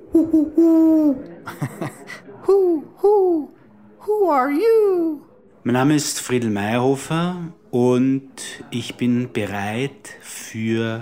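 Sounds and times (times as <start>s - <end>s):
person imitating owl hoots: 0.0s - 1.3s
speech: 0.1s - 1.6s, 4.1s - 10.9s
breathy laugh: 0.1s - 2.2s.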